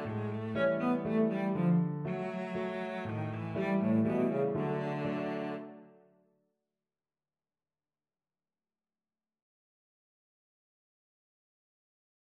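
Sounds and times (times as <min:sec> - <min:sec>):
cello playing waltzes: 0:00.0 - 0:05.9.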